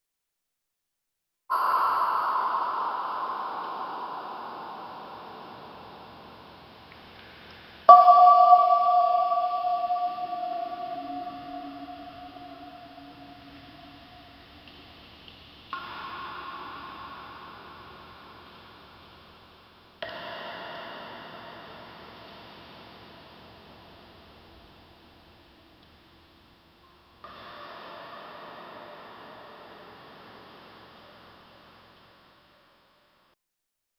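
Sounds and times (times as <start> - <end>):
atmospheric cave ambience: 1.5 - 33.0.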